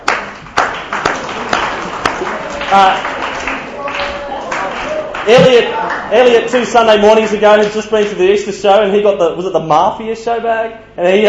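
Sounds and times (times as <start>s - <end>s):
scattered claps: 0.0s - 8.2s
speech: 2.7s - 3.1s, 5.3s - 11.2s.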